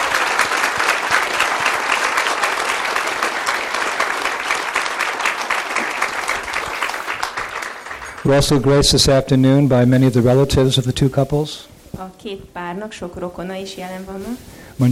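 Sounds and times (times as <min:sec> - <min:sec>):
crowd applauding: 0:00.0 - 0:09.2
speech: 0:08.3 - 0:14.9.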